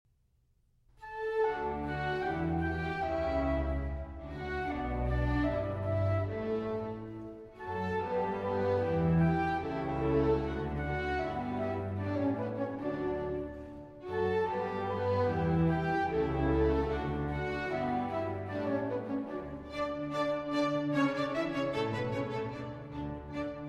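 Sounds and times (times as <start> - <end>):
orchestra playing a symphony: 1.0 - 23.6.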